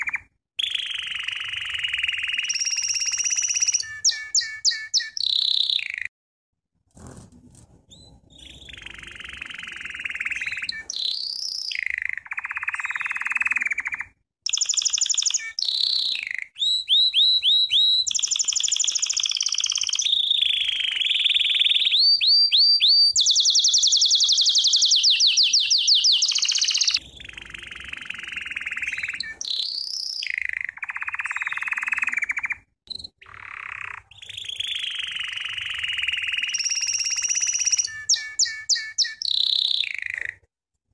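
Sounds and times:
American Singer canary song: 0:00.0 - 0:06.1, 0:07.7 - 0:40.5.

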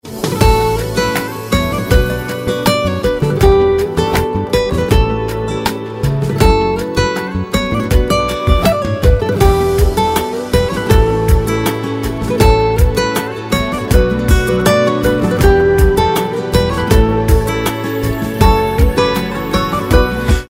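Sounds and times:
ringtone melody: 0:00.3 - 0:20.4.

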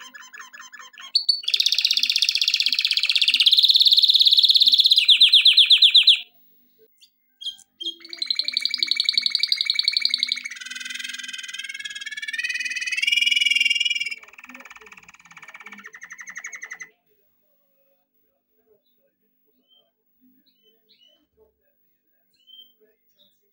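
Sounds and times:
canary trilling: 0:00.0 - 0:06.3, 0:07.0 - 0:17.0.

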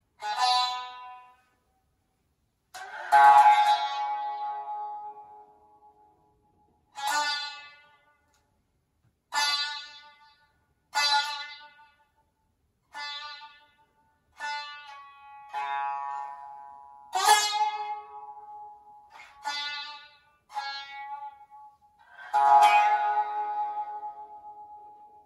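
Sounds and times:
Satsuma biwa: 0:00.0 - 0:01.6, 0:02.7 - 0:25.2.

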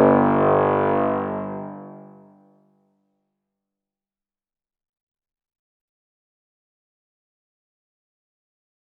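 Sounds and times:
intro music with sustained trombones: 0:00.0 - 0:02.3.

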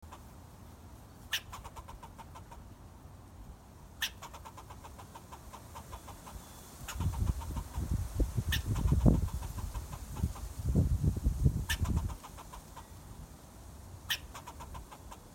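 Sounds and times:
squirrel chirping: 0:01.3 - 0:02.6, 0:04.0 - 0:10.4, 0:11.6 - 0:13.1, 0:14.0 - 0:15.3.

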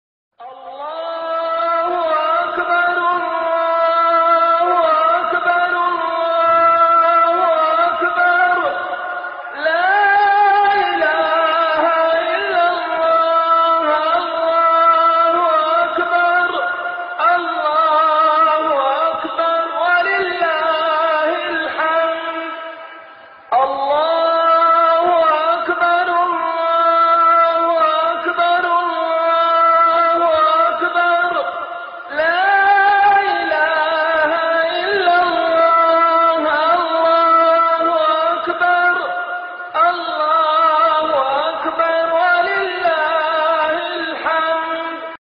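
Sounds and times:
Eid al-Fitr takbir chanting: 0:00.4 - 0:45.1.

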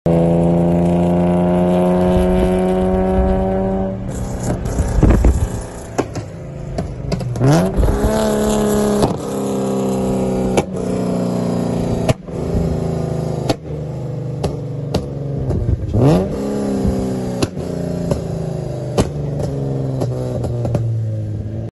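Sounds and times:
Hyundai Genesis Coupe engine: 0:00.1 - 0:21.7.

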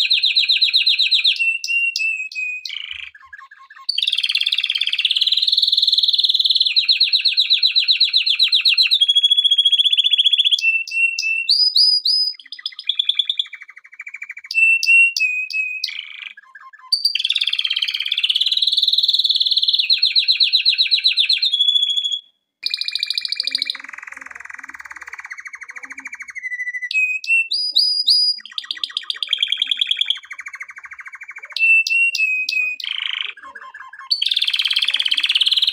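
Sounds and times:
canary song: 0:00.0 - 0:35.7.

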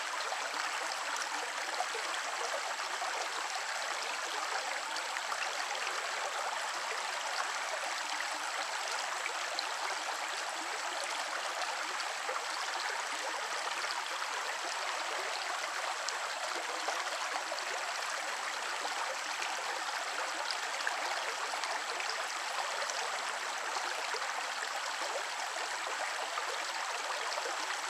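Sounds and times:
water running in a creek: 0:00.0 - 0:27.8.

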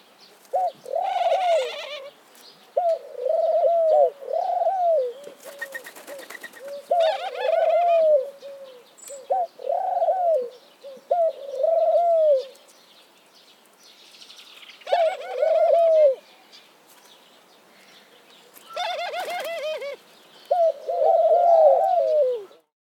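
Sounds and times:
dove cooing: 0:00.4 - 0:02.2, 0:02.8 - 0:12.6, 0:14.8 - 0:16.2, 0:18.7 - 0:22.7.

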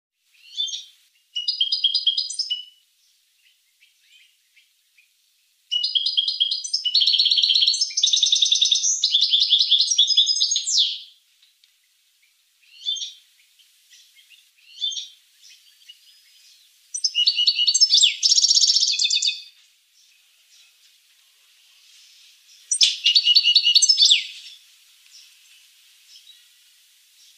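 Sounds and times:
finch song: 0:00.2 - 0:27.3.

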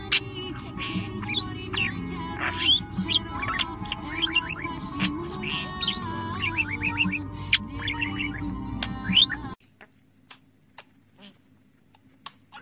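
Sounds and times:
budgerigar warbling: 0:00.0 - 0:09.9.

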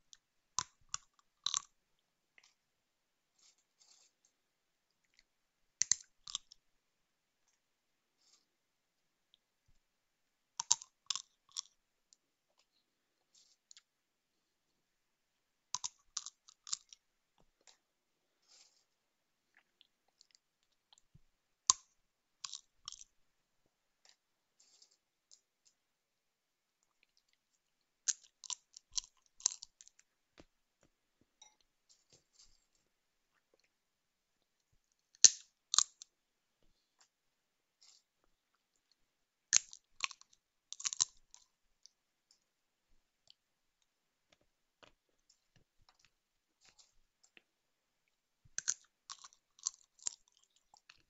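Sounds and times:
person eating seeds: 0:00.1 - 0:02.6, 0:03.4 - 0:06.6, 0:10.6 - 0:14.0, 0:15.7 - 0:21.1, 0:21.7 - 0:23.2, 0:26.8 - 0:30.5, 0:34.4 - 0:36.1, 0:37.8 - 0:42.0, 0:43.2 - 0:51.0.

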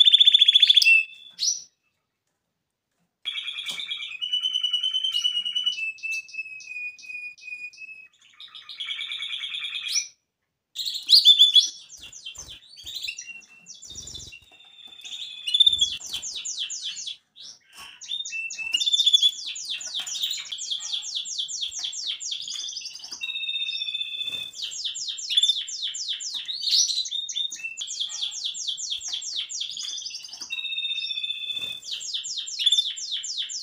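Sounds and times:
canary song: 0:00.0 - 0:01.8, 0:03.3 - 0:33.6.

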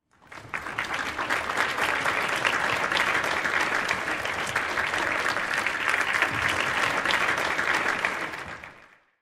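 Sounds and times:
applause: 0:00.0 - 0:09.2.

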